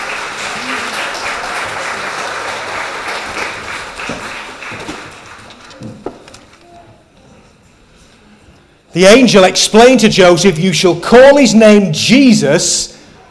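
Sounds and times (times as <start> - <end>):
audience applause: 0.0 - 5.9
speech: 9.0 - 13.0.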